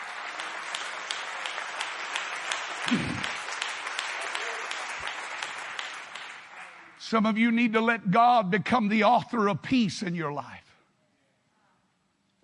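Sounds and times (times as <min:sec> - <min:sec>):
audience clapping hands: 0:00.0 - 0:07.8
speech: 0:07.1 - 0:10.6.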